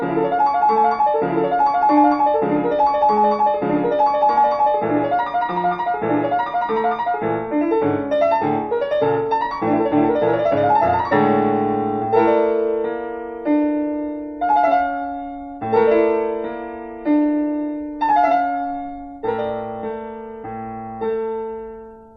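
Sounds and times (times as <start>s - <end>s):
piano prelude: 0.0s - 22.1s.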